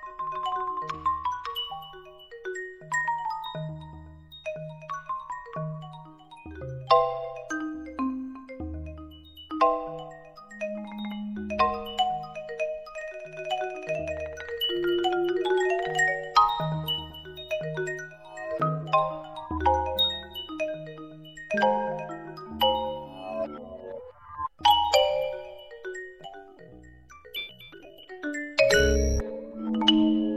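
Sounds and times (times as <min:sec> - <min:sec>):
marimba: 0:00.0 - 0:30.3.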